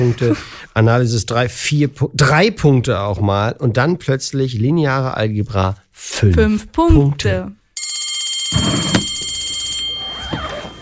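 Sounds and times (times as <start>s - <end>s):
speech: 0.0s - 7.6s
school bell ringing: 7.8s - 10.8s.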